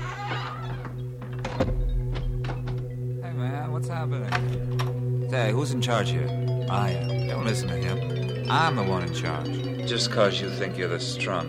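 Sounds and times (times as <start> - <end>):
door swinging shut: 0.0 - 3.0, 4.3 - 5.0
speech: 4.0 - 11.4.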